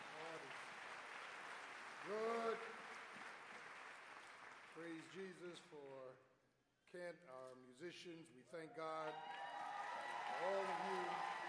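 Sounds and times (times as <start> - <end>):
audience clapping for the choir: 0.0 - 5.8, 9.0 - 11.4
speech: 2.0 - 2.8, 4.8 - 6.3, 6.9 - 9.5, 10.4 - 11.4.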